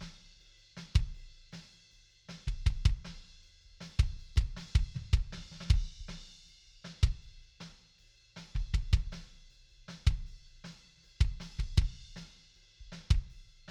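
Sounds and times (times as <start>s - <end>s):
kick drum: 1.0s - 1.2s, 2.5s - 3.2s, 4.0s - 6.2s, 7.0s - 7.3s, 8.6s - 9.2s, 10.0s - 10.3s, 11.2s - 12.1s, 12.9s - 13.4s.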